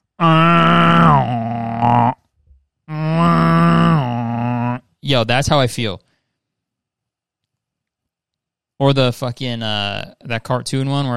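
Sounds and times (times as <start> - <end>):
voice imitating a foghorn: 0.2 - 2.2, 2.9 - 4.9
speech: 5.1 - 6.1, 8.8 - 11.1.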